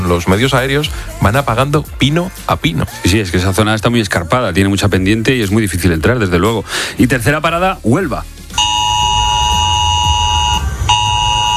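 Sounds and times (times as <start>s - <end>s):
speech: 0.1s - 8.7s
emergency alert tone on mobile phones: 8.6s - 11.5s
low rumbling hum: 8.6s - 11.5s.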